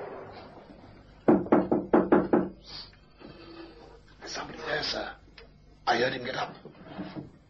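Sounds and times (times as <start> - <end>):
knocking on a door: 1.3 - 2.6
speech: 6.0 - 6.7.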